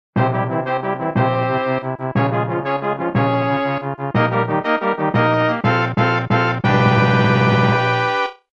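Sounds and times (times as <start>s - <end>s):
castle level clear game jingle: 1.2s - 8.2s.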